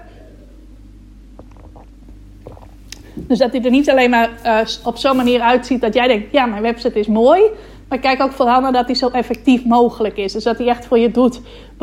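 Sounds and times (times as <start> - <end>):
steady low hum: 0.0 - 10.2
person sipping and swallowing water: 1.3 - 3.2
speech: 3.2 - 11.8.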